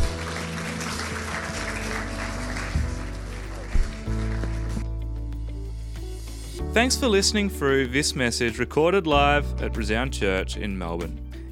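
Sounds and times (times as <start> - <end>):
audience applause: 0.0 - 4.9
soft held low keyboard chords: 0.0 - 11.5
speech: 6.8 - 11.5.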